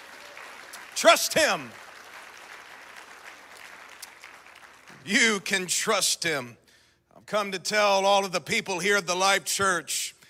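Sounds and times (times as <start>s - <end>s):
audience clapping hands: 0.0s - 5.4s
speech: 1.0s - 1.8s, 5.0s - 6.6s, 7.3s - 10.2s.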